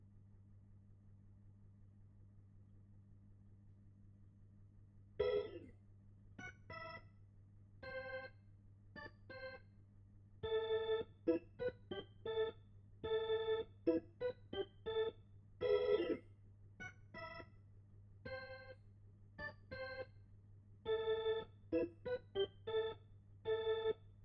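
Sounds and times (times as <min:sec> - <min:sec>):
Hammond organ: 0:05.2 - 0:05.7, 0:06.4 - 0:07.1, 0:07.8 - 0:08.4, 0:09.0 - 0:09.6, 0:10.4 - 0:17.6, 0:18.2 - 0:18.8, 0:19.4 - 0:20.2, 0:20.8 - 0:24.2.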